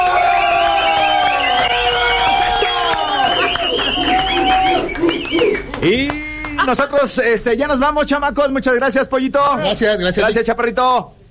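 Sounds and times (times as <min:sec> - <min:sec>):
applause: 0:00.0 - 0:06.9
speech: 0:05.8 - 0:11.2.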